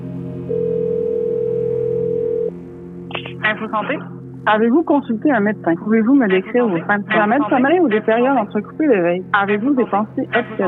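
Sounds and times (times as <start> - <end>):
low hum: 0.0 - 10.6
telephone call ringing tone: 0.5 - 2.6
speech: 3.6 - 10.6.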